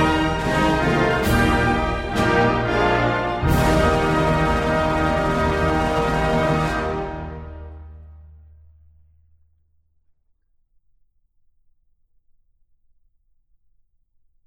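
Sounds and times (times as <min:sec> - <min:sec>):
national anthem music: 0:00.0 - 0:08.2.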